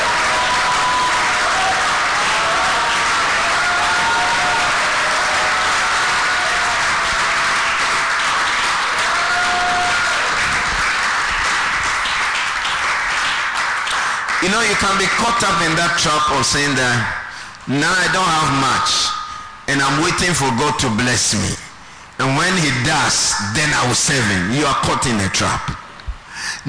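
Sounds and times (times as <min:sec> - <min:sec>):
audience shouting: 0:00.0 - 0:10.5
audience clapping: 0:00.0 - 0:16.1
speech: 0:14.6 - 0:21.6, 0:22.2 - 0:25.8, 0:26.4 - 0:26.6.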